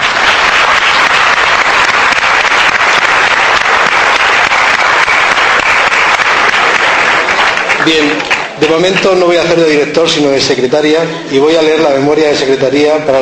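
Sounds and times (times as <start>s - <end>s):
audience applause: 0.0s - 9.9s
speech: 7.9s - 13.1s.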